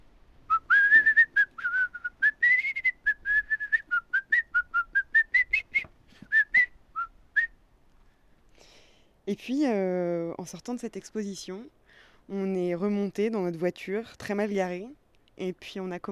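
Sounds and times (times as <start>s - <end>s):
person whistling an imitation of birdsong: 0.5s - 7.6s
speech: 9.3s - 16.0s.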